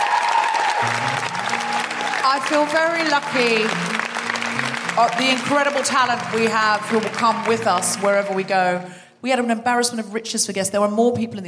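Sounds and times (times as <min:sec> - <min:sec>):
crowd applause: 0:00.0 - 0:09.0
speech: 0:02.3 - 0:04.0, 0:05.0 - 0:11.4.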